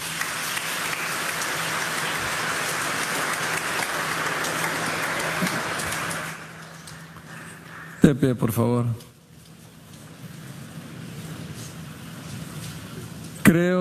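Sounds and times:
audience applause: 0.0s - 8.0s
speech: 8.1s - 9.1s, 13.5s - 13.8s.

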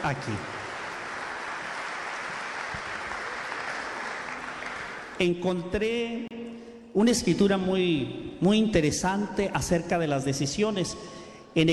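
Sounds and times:
speech: 0.0s - 0.6s, 5.2s - 6.3s, 6.9s - 11.7s
audience applause: 0.0s - 5.2s.

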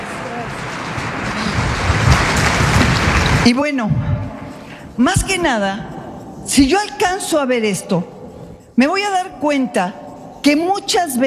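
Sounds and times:
audience applause for performers: 0.0s - 3.5s
speech: 3.4s - 4.3s, 5.0s - 8.1s, 8.8s - 11.2s.

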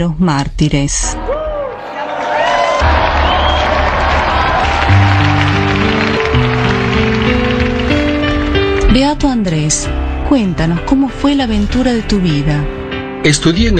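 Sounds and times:
speech: 0.0s - 1.3s, 9.0s - 13.7s
audience applause: 1.7s - 8.8s.

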